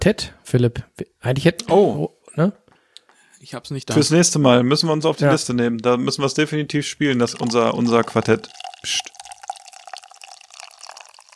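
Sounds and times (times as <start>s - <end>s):
speech: 0.0s - 2.6s, 3.4s - 9.2s
beer pouring into a glass: 7.0s - 11.3s.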